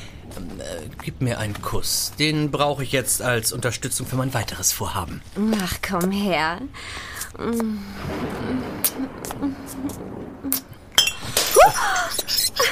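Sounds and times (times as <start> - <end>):
speech: 0.4 - 12.7
champagne bottle glass clinking as it is handled: 11.0 - 12.7.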